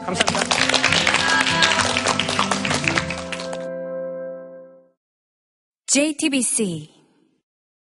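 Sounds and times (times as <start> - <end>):
speech: 0.0 - 0.8, 6.0 - 7.0
audience applause: 0.0 - 3.7.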